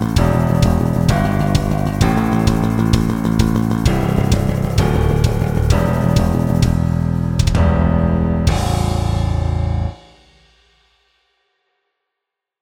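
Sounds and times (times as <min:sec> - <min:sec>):
backing track: 0:00.0 - 0:09.9.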